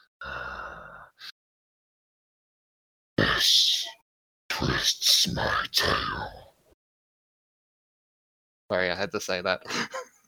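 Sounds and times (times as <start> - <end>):
person imitating a role-play character's heavy breathing: 0.0 - 1.3, 3.2 - 6.5
speech: 3.4 - 4.0, 4.7 - 6.4, 8.7 - 10.0.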